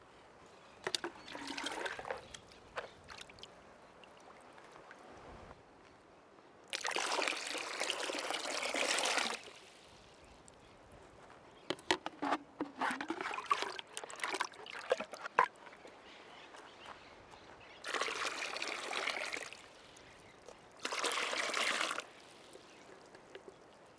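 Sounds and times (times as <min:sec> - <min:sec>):
water poured from a bucket for irrigation: 0:00.8 - 0:03.5, 0:06.7 - 0:10.2, 0:11.7 - 0:16.7, 0:17.8 - 0:23.7.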